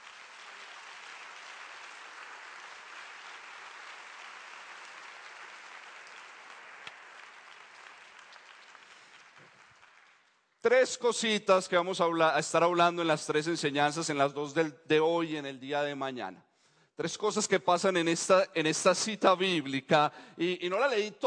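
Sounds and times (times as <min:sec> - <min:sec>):
crowd applauding: 0:00.0 - 0:10.6
speech: 0:10.6 - 0:21.2.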